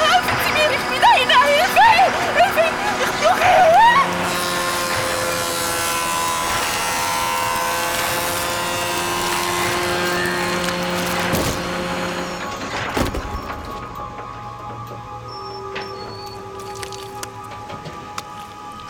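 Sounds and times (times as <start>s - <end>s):
sawmill saw running: 0.0s - 13.8s.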